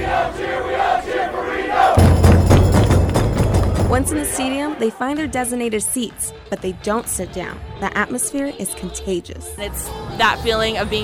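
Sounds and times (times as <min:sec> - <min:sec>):
soccer fans chanting and shouting: 0:00.0 - 0:10.2
soccer fans banging drums: 0:01.9 - 0:04.7
speech: 0:04.0 - 0:11.0.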